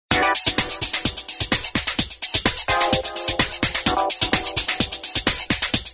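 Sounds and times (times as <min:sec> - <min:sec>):
lounge ringtone music: 0:00.1 - 0:01.9, 0:02.6 - 0:05.6.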